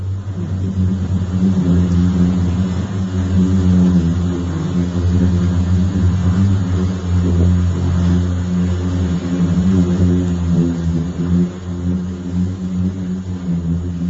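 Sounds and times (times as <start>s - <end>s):
singing sand dunes of the Death Valley Eureka Dunes humming: 0.0s - 14.0s.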